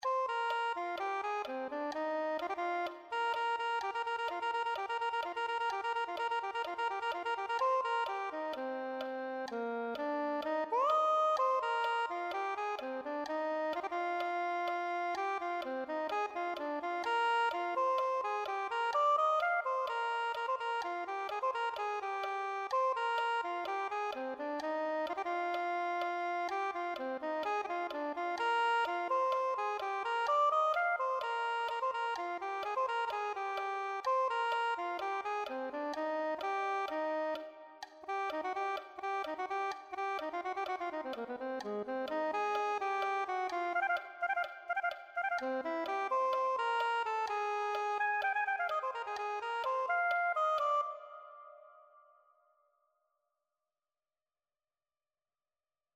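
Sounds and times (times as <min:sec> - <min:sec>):
soprano saxophone: 0:00.0 - 0:51.9.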